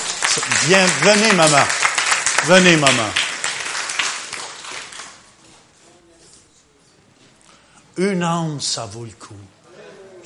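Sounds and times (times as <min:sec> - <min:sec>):
audience applauding: 0:00.0 - 0:05.3
speech: 0:00.6 - 0:01.8, 0:02.4 - 0:03.2, 0:08.0 - 0:09.6.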